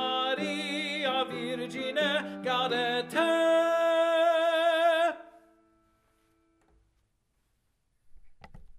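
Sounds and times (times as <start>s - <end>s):
tenor singing: 0.0s - 5.5s.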